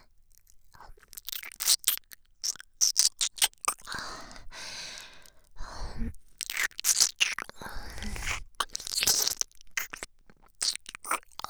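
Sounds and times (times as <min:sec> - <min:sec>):
ASMR ear licking sounds: 0:01.0 - 0:04.0, 0:06.3 - 0:11.4.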